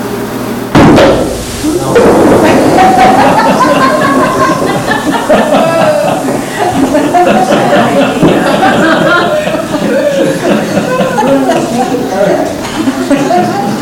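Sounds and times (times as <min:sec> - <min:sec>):
hammer striking a ball of silly putty: 0:00.7 - 0:03.3
noisy commotion of a group: 0:00.7 - 0:13.8
laughter: 0:01.7 - 0:13.8.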